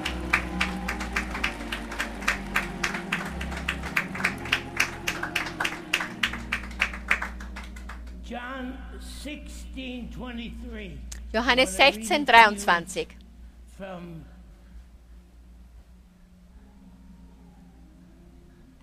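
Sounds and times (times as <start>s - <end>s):
audience clapping: 0.0s - 8.2s
speech: 9.2s - 13.2s, 13.8s - 14.3s.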